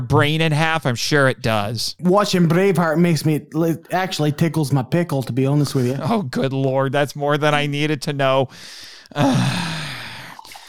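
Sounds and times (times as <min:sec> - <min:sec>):
speech: 0:00.0 - 0:09.8
drink being poured: 0:05.2 - 0:06.0, 0:09.9 - 0:10.6.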